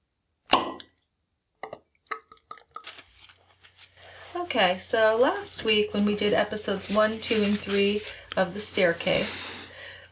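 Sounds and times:
beer bottle being cracked open: 0:00.5 - 0:01.0
speech: 0:04.5 - 0:09.5.

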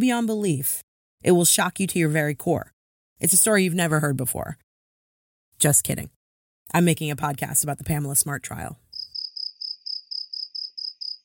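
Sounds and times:
speech: 0:00.0 - 0:04.6, 0:05.6 - 0:08.8
crickets chirping: 0:08.9 - 0:11.2.

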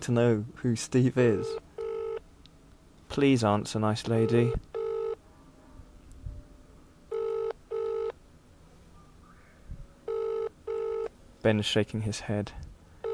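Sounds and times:
speech: 0:00.0 - 0:01.6, 0:03.1 - 0:04.7, 0:11.4 - 0:12.6
faint hiss: 0:00.0 - 0:13.1
telephone ringback tone on an outgoing call: 0:01.4 - 0:02.2, 0:04.2 - 0:05.2, 0:07.1 - 0:08.2, 0:10.1 - 0:11.1.

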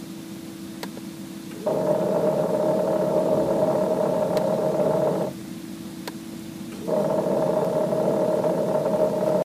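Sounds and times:
Prius heater pump growling: 0:01.5 - 0:05.6, 0:06.7 - 0:09.4.

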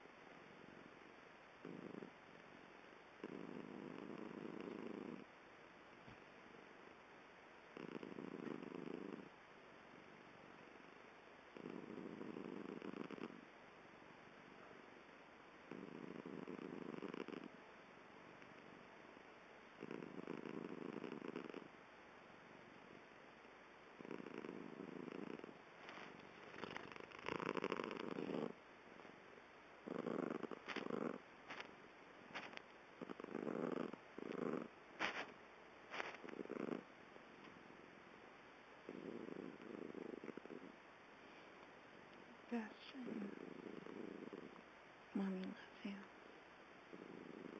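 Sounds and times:
purring: 0:00.0 - 0:02.6, 0:03.2 - 0:05.3, 0:07.7 - 0:13.5, 0:15.6 - 0:17.6, 0:19.8 - 0:21.7, 0:24.0 - 0:29.2, 0:29.8 - 0:35.3, 0:35.9 - 0:38.0, 0:38.8 - 0:40.8, 0:42.5 - 0:46.1, 0:46.9 - 0:47.5.

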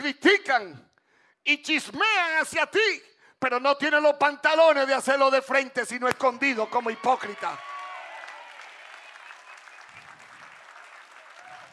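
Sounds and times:
speech: 0:00.0 - 0:07.7
audience applause: 0:06.7 - 0:11.7.

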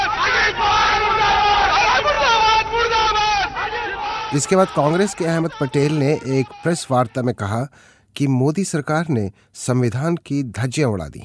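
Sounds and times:
Nationalist Congress Party workers chanting slogans: 0:00.0 - 0:07.3
speech: 0:04.3 - 0:11.2.

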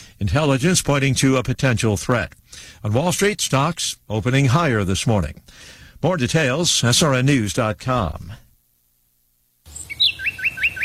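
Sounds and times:
speech: 0:00.2 - 0:08.4
small birds chirping in a garden: 0:09.7 - 0:10.8.

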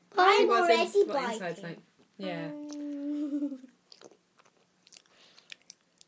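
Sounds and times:
people talking: 0:00.1 - 0:03.7
child biting and chewing a Wagon Wheel chocolate biscuit: 0:03.7 - 0:06.0.

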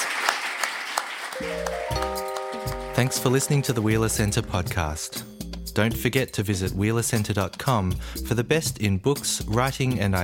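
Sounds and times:
audience clapping: 0:00.0 - 0:03.8
sustained musical tones: 0:01.4 - 0:05.7
speech: 0:03.0 - 0:10.2.

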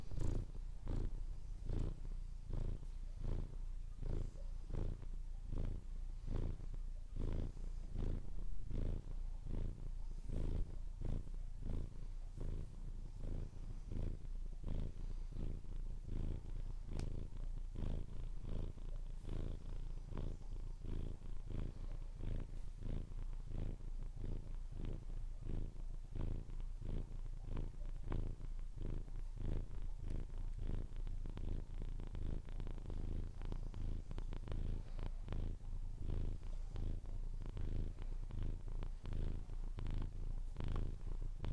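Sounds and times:
cat purring: 0:00.0 - 0:41.5.

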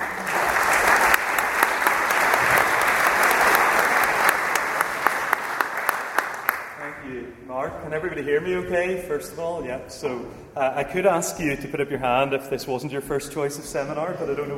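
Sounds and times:
audience applause welcoming a seminar speaker: 0:00.0 - 0:07.0
speech: 0:07.8 - 0:14.5.

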